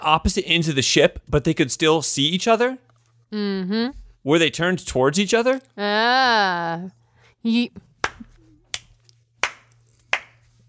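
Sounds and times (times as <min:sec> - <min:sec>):
speech: 0:00.0 - 0:07.9
hand clapping: 0:08.0 - 0:10.5.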